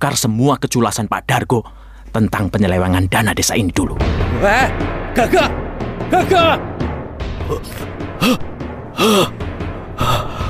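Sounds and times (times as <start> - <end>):
speech: 0.0 - 6.9, 7.5 - 10.3
person gasping with laboured breathing from sudden shortness of breath: 7.5 - 9.4, 10.0 - 10.4.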